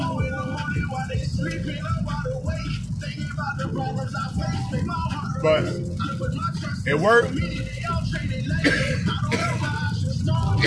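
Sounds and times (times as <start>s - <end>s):
noisy background: 0.0s - 10.6s
speech: 5.4s - 5.8s, 6.9s - 7.6s, 8.6s - 8.9s
person coughing from choking on blunt smoke: 8.6s - 9.6s.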